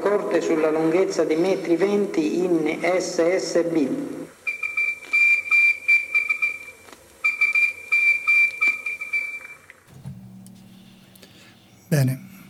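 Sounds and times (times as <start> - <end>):
speech: 0.1 - 4.2
SOS signal played on recorder flute: 4.4 - 9.6.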